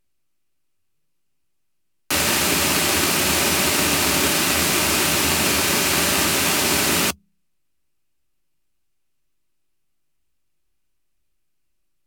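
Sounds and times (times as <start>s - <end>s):
pink noise reverberation in an announcer booth: 2.1s - 7.2s.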